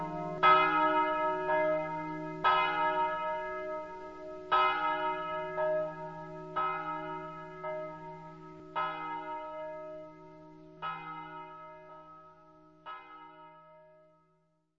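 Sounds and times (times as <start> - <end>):
bells ringing in Savogna: 0.0 - 11.9.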